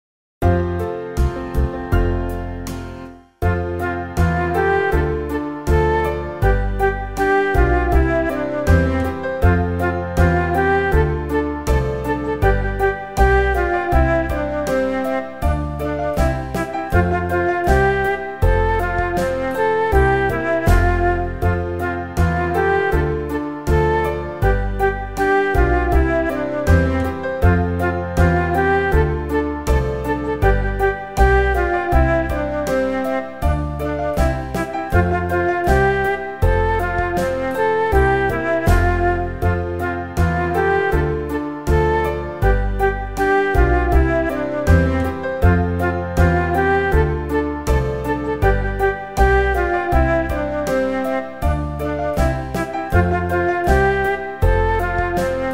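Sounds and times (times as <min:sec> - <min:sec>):
melody: 0:00.4 - 0:55.5.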